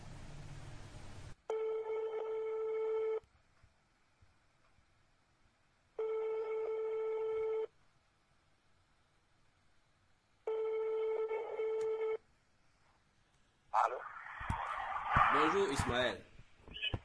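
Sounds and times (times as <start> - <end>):
telephone line tone as a call is placed to Yaoundé: 1.5 - 3.2, 6.0 - 7.7, 10.5 - 12.2
short noisy rush: 13.8 - 16.2
speech: 15.4 - 16.3.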